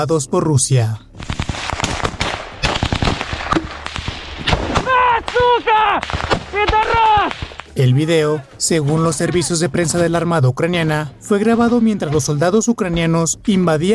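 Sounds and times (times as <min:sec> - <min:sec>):
speech: 0:00.0 - 0:01.3, 0:05.5 - 0:13.9
gunfire in frontline combat: 0:01.2 - 0:07.8
men shouting: 0:04.7 - 0:09.6.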